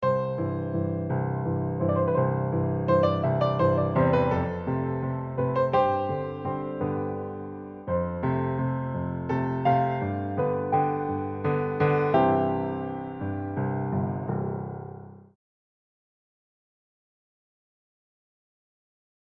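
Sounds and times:
delicate piano etude: 0.0 - 15.4.

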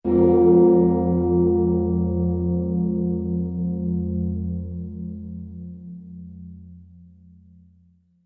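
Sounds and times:
bells sting: 0.1 - 5.0.

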